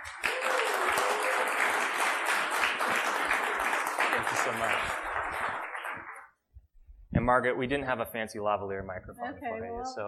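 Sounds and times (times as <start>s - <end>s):
audience applause welcoming a new chief executive onto a stage: 0.0s - 6.3s
speech: 4.3s - 5.0s, 7.2s - 10.0s.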